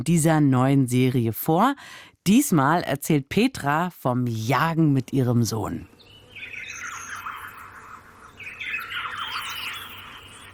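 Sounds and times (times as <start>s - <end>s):
speech: 0.0s - 5.9s
birdsong: 5.5s - 10.5s.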